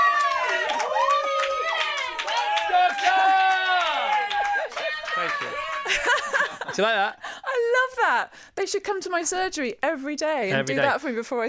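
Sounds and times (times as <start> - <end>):
control room round of applause: 0.0 - 6.7
laughter: 4.5 - 7.6
speech: 6.8 - 7.2, 8.0 - 11.4.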